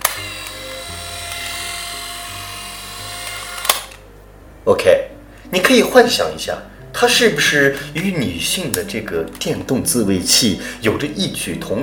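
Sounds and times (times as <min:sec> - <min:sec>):
electric shaver running: 0:00.0 - 0:04.0
speech: 0:04.7 - 0:11.8.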